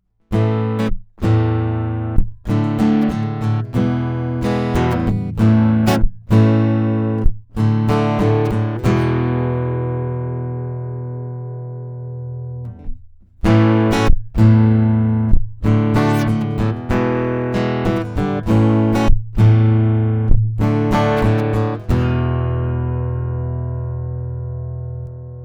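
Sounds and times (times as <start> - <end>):
guitar: 0.0 - 25.4.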